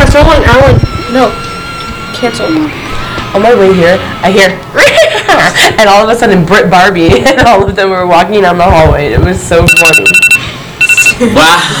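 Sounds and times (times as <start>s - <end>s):
phone alarm electronic tones: 0.0s - 4.2s, 9.6s - 11.2s
speech: 0.2s - 1.5s, 2.2s - 10.2s, 11.2s - 11.7s
laughter: 4.8s - 6.0s.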